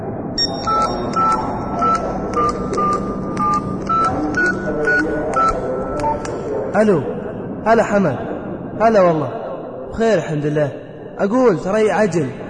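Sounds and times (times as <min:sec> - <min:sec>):
low rumble and murmur: 0:00.0 - 0:12.4
phone number being dialed with keypad tones: 0:00.4 - 0:06.5
speech: 0:06.8 - 0:12.4.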